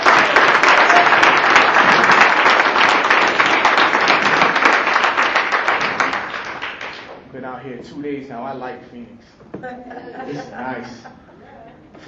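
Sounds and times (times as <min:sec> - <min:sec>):
audience applauding for the poets: 0:00.0 - 0:07.1
speech: 0:07.6 - 0:11.2
laughter: 0:09.6 - 0:12.0.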